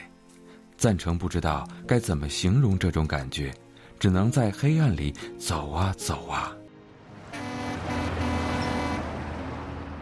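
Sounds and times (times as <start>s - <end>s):
speech: 0.8s - 6.6s
large trucks honking: 7.0s - 10.0s.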